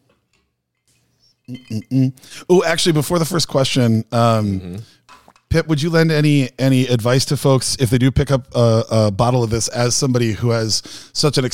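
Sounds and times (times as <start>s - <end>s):
glasses clinking in a toast: 1.5s - 2.0s
speech: 1.5s - 11.5s.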